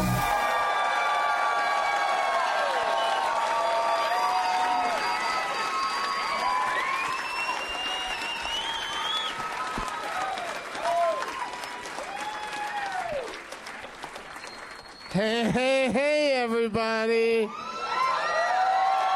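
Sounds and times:
whoops and cheers: 0.2s - 13.4s, 17.5s - 19.1s
large audience clapping loudly: 0.2s - 16.3s.

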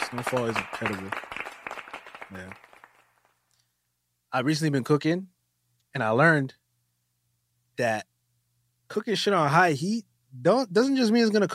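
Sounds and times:
hand claps: 0.0s - 3.5s
speech: 0.1s - 1.3s, 2.3s - 2.6s, 4.3s - 5.3s, 5.9s - 6.6s, 7.8s - 8.1s, 8.9s - 11.5s.

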